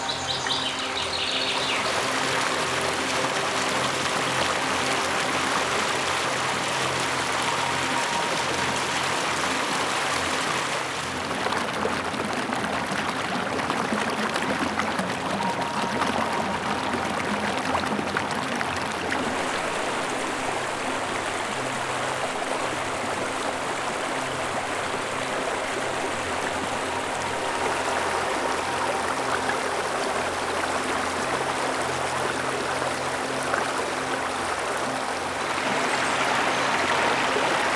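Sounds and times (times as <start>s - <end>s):
water flowing: 0.0s - 37.7s.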